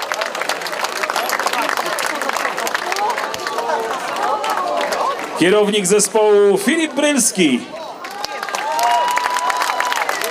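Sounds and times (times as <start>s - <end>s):
crowd applause: 0.0s - 10.2s
speech: 5.4s - 7.8s
scattered cheers and whistles: 8.2s - 10.2s.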